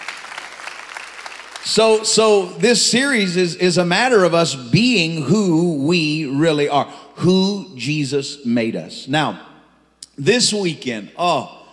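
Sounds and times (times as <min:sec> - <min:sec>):
audience clapping hands: 0:00.0 - 0:01.8
speech: 0:01.6 - 0:09.5, 0:10.2 - 0:11.6.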